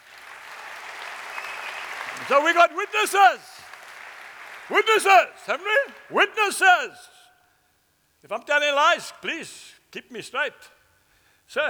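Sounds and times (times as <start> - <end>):
audience clapping: 0.0 - 6.1
speech: 2.2 - 3.5, 4.7 - 7.2, 8.2 - 10.8, 11.5 - 11.6.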